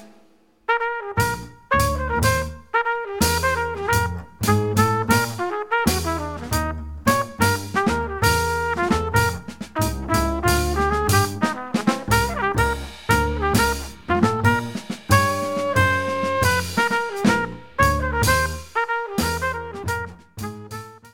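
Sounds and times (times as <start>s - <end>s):
music without piano: 0.7s - 21.1s.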